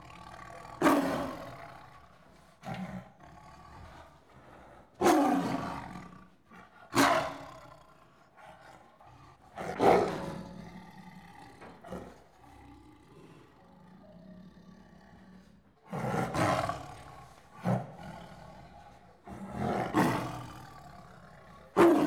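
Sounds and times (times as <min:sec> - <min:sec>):
tiger growling and snarling in countryside of India, Pakistan and Nepal: 0:00.0 - 0:22.0.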